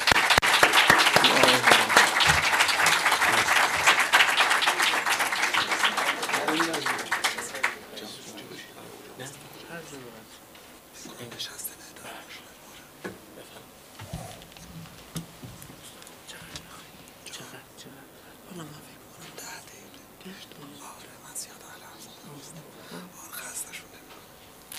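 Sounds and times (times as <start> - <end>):
audience applause at a Persian-language literary talk: 0.0 - 8.2.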